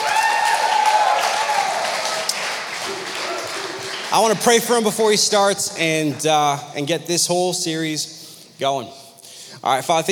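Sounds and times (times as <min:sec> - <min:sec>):
audience applause: 0:00.0 - 0:05.0
speech: 0:04.1 - 0:09.0, 0:09.6 - 0:10.0.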